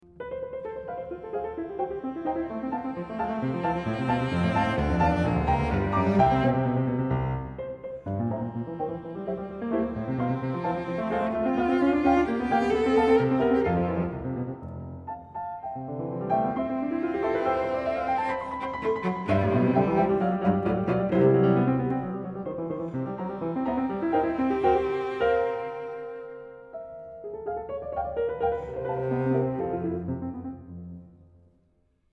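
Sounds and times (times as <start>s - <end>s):
cello and piano variations: 0.1s - 31.2s.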